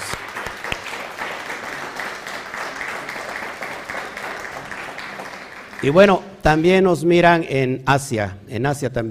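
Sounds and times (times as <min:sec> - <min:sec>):
applause: 0:00.0 - 0:06.2
speech: 0:05.8 - 0:09.0.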